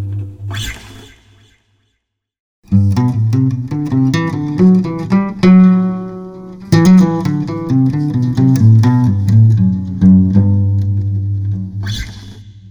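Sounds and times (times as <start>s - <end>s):
acoustic guitar: 2.7s - 11.9s.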